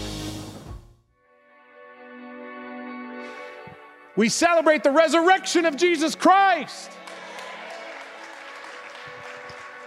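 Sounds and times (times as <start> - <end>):
speech: 4.2 - 7.0
audience clapping: 5.6 - 9.8.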